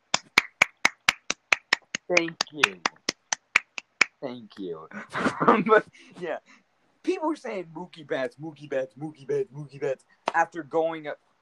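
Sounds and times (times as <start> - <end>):
sharp crisp hand claps: 0.0 - 4.7
speech: 2.1 - 3.0, 4.2 - 11.4.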